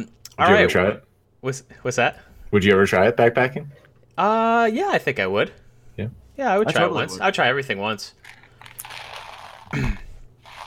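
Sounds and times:
speech: 0.0 - 8.4, 9.7 - 10.0
Nerds candies being poured out of box: 8.2 - 10.6.

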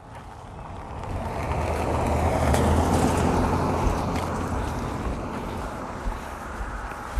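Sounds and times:
wind buffeting the microphone: 0.0 - 7.1
car driving past on road: 0.3 - 6.5.

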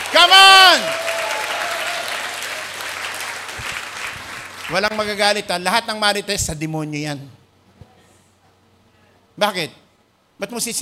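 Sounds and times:
congregation applauding during a church service: 0.0 - 5.4
speech: 4.7 - 7.4, 9.4 - 9.8, 10.4 - 10.8.

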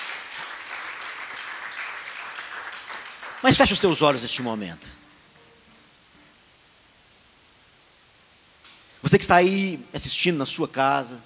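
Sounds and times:
audience applauding: 0.0 - 4.9
speech: 3.4 - 5.0, 9.1 - 11.2.

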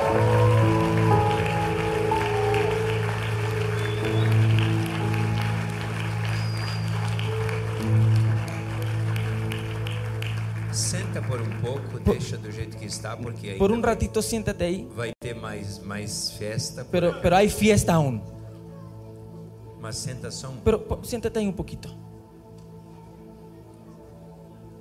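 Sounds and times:
loud audience applause: 0.0 - 12.4
speech: 12.3 - 18.4, 19.8 - 22.1.

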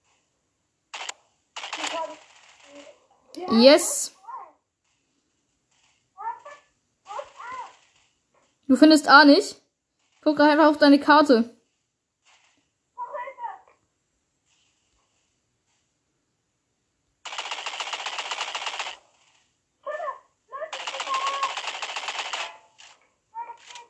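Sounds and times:
rapid automatic gunfire in the video game Roblox: 1.0 - 3.0, 6.3 - 8.1, 17.3 - 19.4, 20.7 - 23.0
speech: 2.8 - 4.2, 8.7 - 9.6, 10.2 - 11.6.

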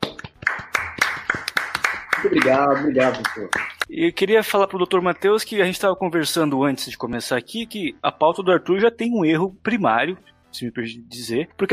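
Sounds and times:
hand claps: 0.0 - 3.9
speech: 2.2 - 11.7.

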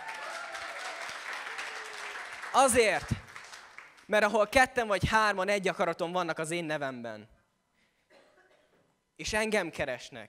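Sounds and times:
audience applause: 0.0 - 4.1
speech: 2.5 - 3.2, 4.1 - 7.4, 9.2 - 10.2.

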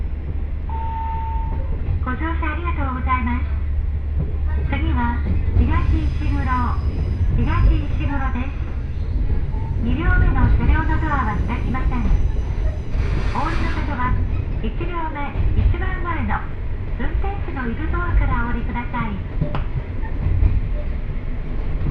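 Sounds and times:
two-car diesel train engine rumble: 0.0 - 21.8
short tone: 0.7 - 1.6.

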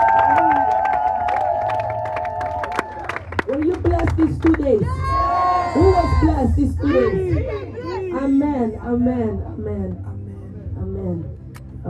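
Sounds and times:
audience clapping and cheering: 0.0 - 5.8
speech: 6.5 - 7.6, 8.2 - 10.1.

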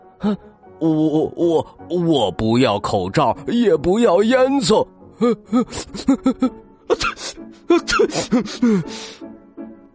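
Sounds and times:
speech: 0.2 - 9.3
voice imitating a huge dragon sneeze: 6.9 - 8.4.

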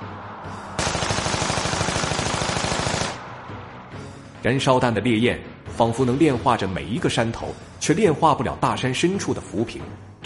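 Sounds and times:
Gatling gun firing: 0.8 - 3.2
speech: 4.4 - 10.2.

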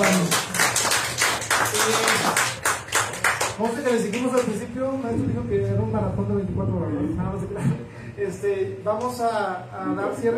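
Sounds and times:
applause: 0.0 - 4.6
speech: 3.6 - 10.3.

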